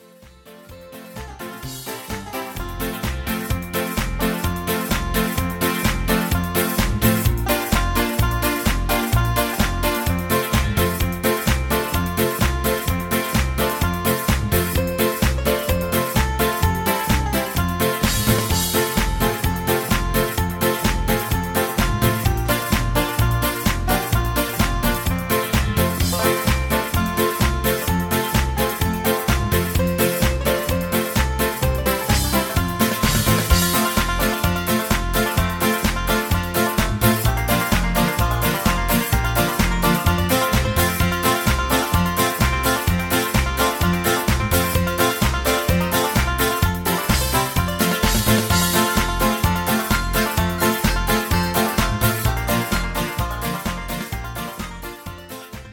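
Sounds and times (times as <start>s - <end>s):
instrumental music: 0.0s - 55.7s.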